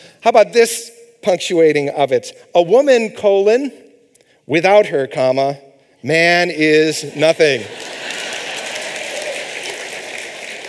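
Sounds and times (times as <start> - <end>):
speech: 0.2 - 3.8, 4.5 - 7.8
audience applause: 7.5 - 10.6.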